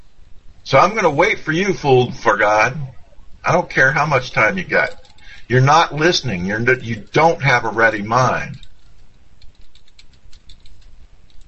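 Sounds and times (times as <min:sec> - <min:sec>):
low hum: 0:00.0 - 0:11.4
speech: 0:00.7 - 0:08.6
typing on a keyboard: 0:08.5 - 0:11.4.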